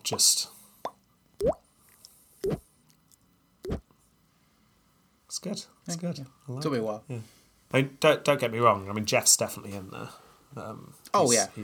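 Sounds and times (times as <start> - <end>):
speech: 0.1 - 0.6, 5.4 - 11.6
water dripping: 1.4 - 1.6.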